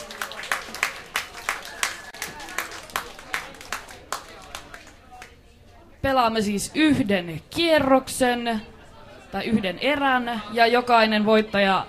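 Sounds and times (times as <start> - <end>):
audience applause at a club night in a bar in Turku Finland: 0.0 - 5.4
speech: 6.0 - 8.7, 9.3 - 11.8.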